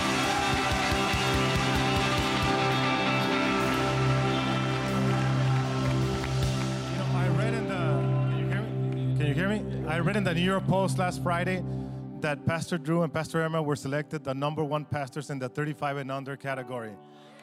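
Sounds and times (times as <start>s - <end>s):
large crowd cheering and shouting: 0.0s - 8.8s
speech: 10.0s - 17.3s.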